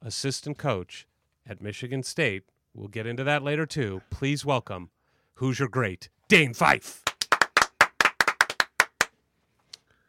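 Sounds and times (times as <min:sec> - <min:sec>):
speech: 0:00.1 - 0:07.0
hand claps from studio hosts: 0:06.9 - 0:09.2.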